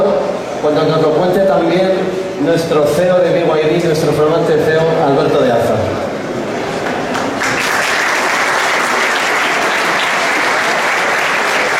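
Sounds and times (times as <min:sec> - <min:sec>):
speech: 0:00.6 - 0:06.1
audience applause: 0:06.8 - 0:11.7.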